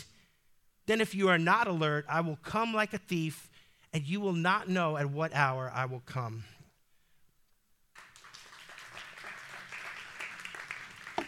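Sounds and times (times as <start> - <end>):
speech: 0.9 - 6.6
audience applause: 8.0 - 11.2.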